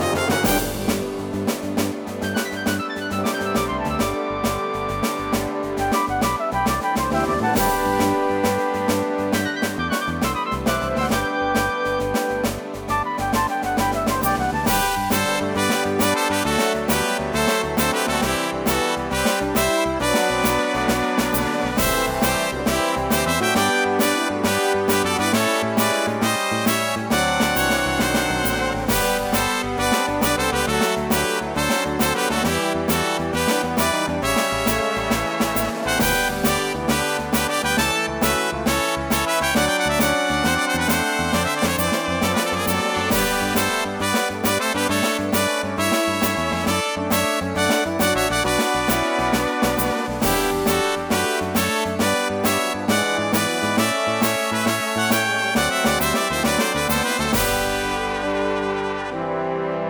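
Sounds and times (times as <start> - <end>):
tamer battle victory music: 0.0 - 59.2.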